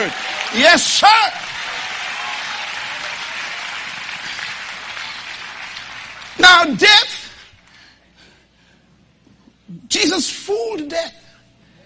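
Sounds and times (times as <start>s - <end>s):
speech: 0.0s - 1.5s, 6.6s - 7.0s, 10.5s - 11.2s
audience clapping hands: 0.0s - 7.8s.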